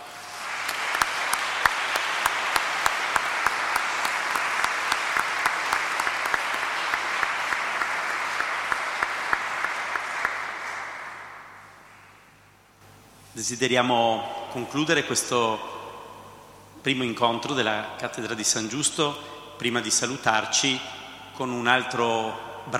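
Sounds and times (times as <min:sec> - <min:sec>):
crowd applause: 0:00.0 - 0:12.1
speech: 0:13.4 - 0:15.8, 0:16.8 - 0:22.7.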